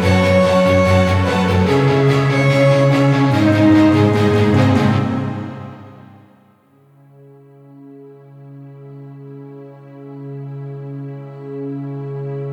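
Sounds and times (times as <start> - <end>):
fanfare: 0.0 - 6.4.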